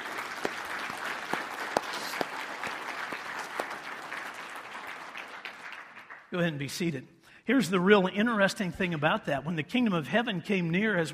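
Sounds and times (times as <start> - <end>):
audience applauding: 0.0 - 6.3
speech: 6.3 - 11.1.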